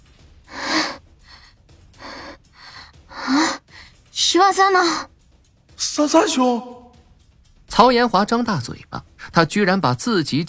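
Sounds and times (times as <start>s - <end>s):
heavy panting breaths while leaning against a tree trunk: 0.4s - 4.0s
speech: 4.3s - 5.1s, 5.9s - 6.8s, 7.8s - 10.4s.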